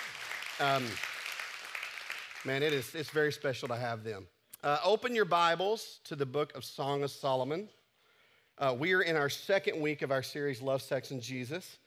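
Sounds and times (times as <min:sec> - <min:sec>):
church audience applause: 0:00.0 - 0:03.3
speech: 0:00.6 - 0:01.1, 0:02.4 - 0:07.8, 0:08.6 - 0:11.8.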